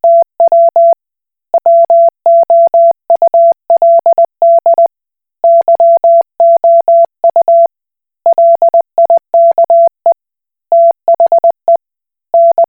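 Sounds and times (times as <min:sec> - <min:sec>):
Koch Morse code beeps: 0:00.0 - 0:01.0, 0:01.6 - 0:07.7, 0:08.3 - 0:10.0, 0:10.7 - 0:11.8, 0:12.4 - 0:12.6.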